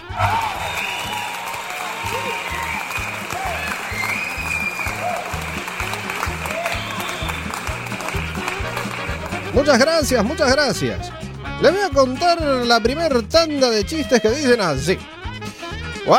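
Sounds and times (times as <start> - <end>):
audience applause: 0.0 - 9.6
audience laughter: 1.9 - 9.5
speech: 9.6 - 15.1.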